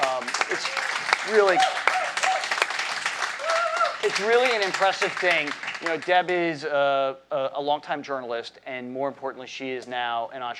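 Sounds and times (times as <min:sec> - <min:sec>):
people cheering and calling out: 0:00.0 - 0:06.2
audience applause: 0:00.0 - 0:06.3
speech: 0:01.3 - 0:01.8, 0:04.0 - 0:10.5.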